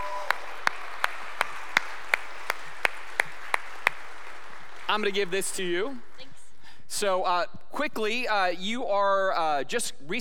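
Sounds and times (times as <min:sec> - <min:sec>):
hand claps welcoming a guest at a church gathering: 0:00.0 - 0:05.1
speech: 0:05.0 - 0:06.3, 0:06.9 - 0:10.1.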